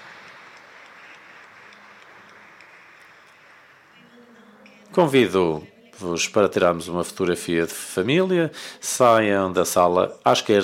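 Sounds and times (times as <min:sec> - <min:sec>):
audience applause: 0:00.0 - 0:04.0
speech: 0:04.9 - 0:10.6.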